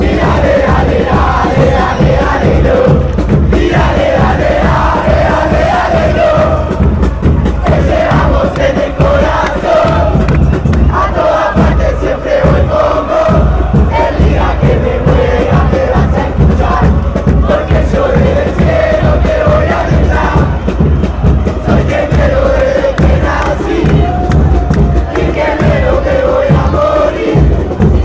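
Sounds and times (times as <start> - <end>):
football chant in Argentina: 0.0 - 28.0.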